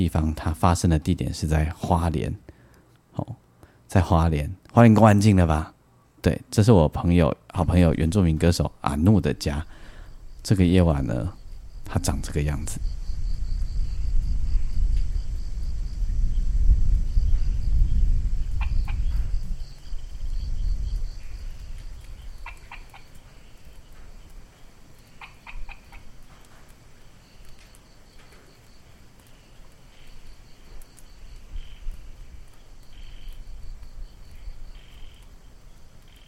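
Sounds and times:
speech: 0.0s - 2.4s, 3.2s - 9.8s, 10.4s - 13.0s
small raindrops dripping on stone floor: 11.4s - 36.2s.

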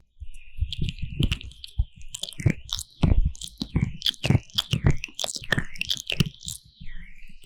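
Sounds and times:
slick squishy ear massage with Vaseline: 0.7s - 6.7s.

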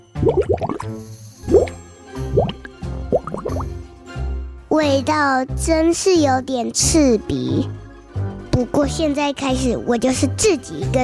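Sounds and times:
bubbling bath water: 0.1s - 0.9s, 1.5s - 3.7s
speech: 0.2s - 1.6s, 4.8s - 7.8s, 8.6s - 11.0s.

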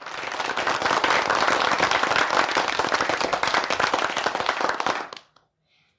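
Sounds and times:
audience applause: 0.0s - 5.3s.

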